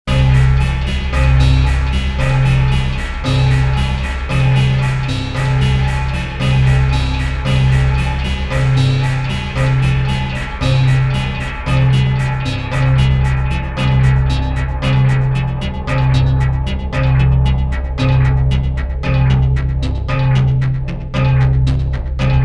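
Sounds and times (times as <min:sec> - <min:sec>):
Sequential Prophet X synthesizer chamber music: 0:00.1 - 0:22.4.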